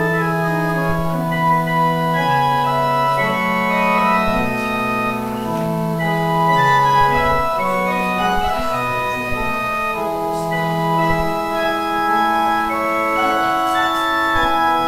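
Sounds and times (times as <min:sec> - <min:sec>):
organ interlude during the offering: 0:00.0 - 0:14.8.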